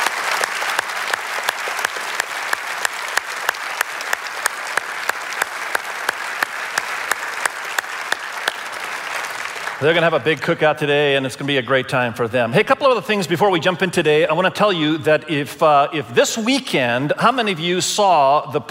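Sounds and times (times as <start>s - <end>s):
thundering applause from church audience: 0.0s - 10.8s
speech: 9.8s - 18.6s.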